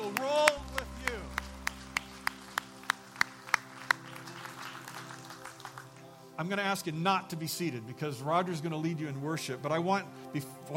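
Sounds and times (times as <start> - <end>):
audience clapping: 0.0 - 6.4
speech: 6.4 - 10.7.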